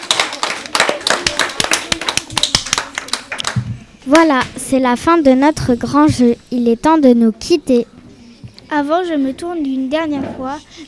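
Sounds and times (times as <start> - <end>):
audience applause: 0.0 - 3.6
speech: 4.1 - 7.9, 8.7 - 10.8.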